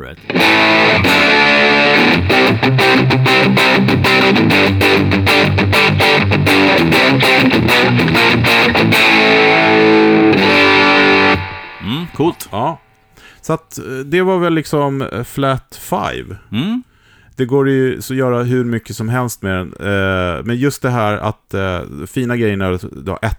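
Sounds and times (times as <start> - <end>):
heavily distorted high-gain electric guitar playing palm-muted riffs: 0.0 - 13.2
speech: 0.1 - 1.2, 12.2 - 23.3.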